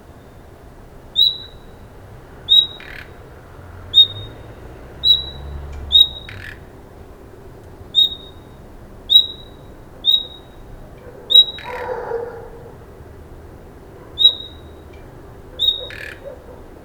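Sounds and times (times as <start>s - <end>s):
common nightingale calling: 1.2s - 1.8s, 2.5s - 3.2s, 3.9s - 6.6s, 8.0s - 10.6s, 11.3s - 12.0s, 14.2s - 14.8s, 15.6s - 16.8s.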